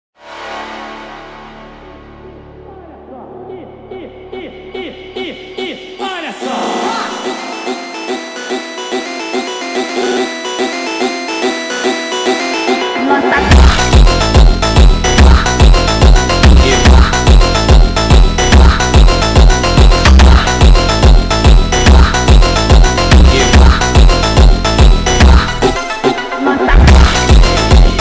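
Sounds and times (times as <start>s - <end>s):
sped up funk music: 6.9s - 27.9s.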